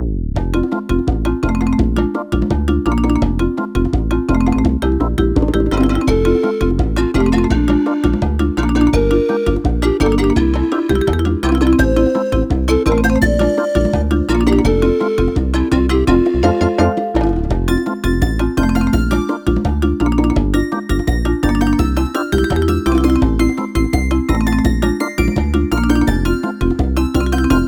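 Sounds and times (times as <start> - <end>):
music at 84 bpm: 0.0 - 27.6.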